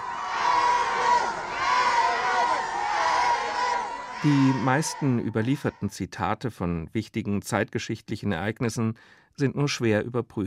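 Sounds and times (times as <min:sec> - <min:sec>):
large crowd of fans at a train shouting and cheering in farewell: 0:00.0 - 0:06.0
speech: 0:04.2 - 0:10.4.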